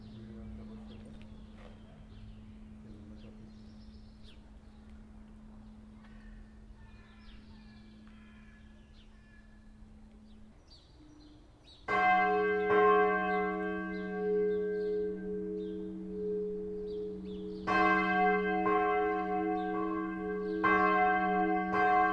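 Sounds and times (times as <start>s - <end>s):
bells rung by a bell ringer: 11.9s - 22.1s.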